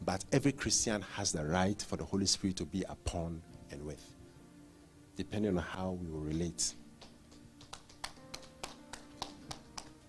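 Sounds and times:
speech: 0.1s - 4.2s, 5.2s - 6.8s
weak clapping: 7.0s - 10.0s.

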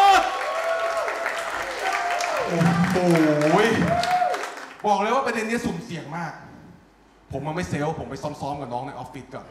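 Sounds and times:
audience applause welcoming comedian: 0.1s - 4.9s
speech: 4.8s - 6.5s, 7.3s - 9.4s.

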